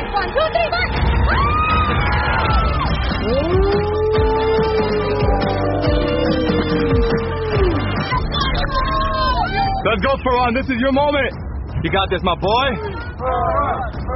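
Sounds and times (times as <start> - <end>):
crowd cheering: 0.0 - 9.8
speech: 9.9 - 14.0.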